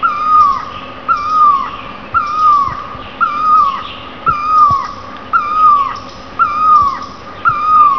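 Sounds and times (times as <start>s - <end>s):
great barbet calling: 0.0s - 7.9s
low background rumble: 0.0s - 7.9s.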